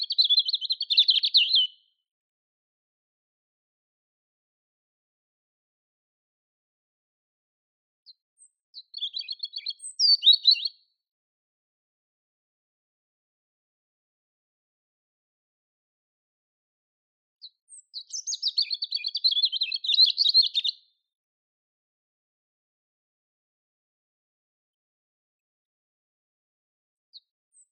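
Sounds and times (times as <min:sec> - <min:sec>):
European robin Erithacus rubecula singing: 0:00.0 - 0:01.8, 0:08.1 - 0:10.8, 0:17.4 - 0:20.8.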